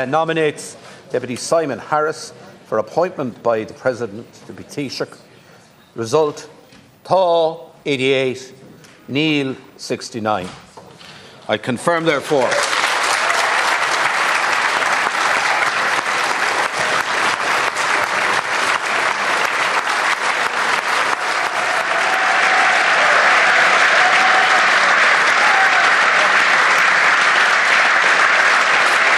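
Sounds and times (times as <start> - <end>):
speech: 0.0 - 5.3, 6.0 - 10.6, 11.5 - 12.6
parliament applause from the government benches: 12.1 - 29.1.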